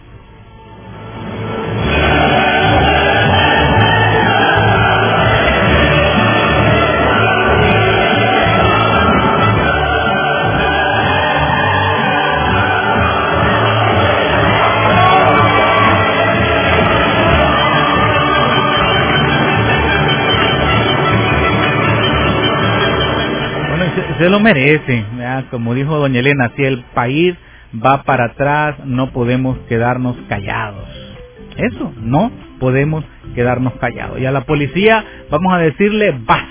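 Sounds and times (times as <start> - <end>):
audience applause: 1.9 - 24.2
speech: 24.4 - 31.0, 31.6 - 36.4.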